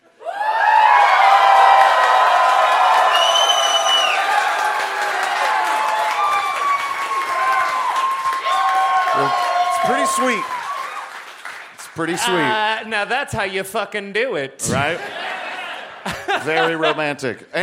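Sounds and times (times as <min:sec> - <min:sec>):
large crowd cheering: 0:00.0 - 0:13.0, 0:14.7 - 0:17.0
whoops and shouts: 0:00.2 - 0:11.1
speech: 0:10.2 - 0:10.5, 0:12.0 - 0:15.1, 0:16.4 - 0:17.6
laughter: 0:14.6 - 0:17.6.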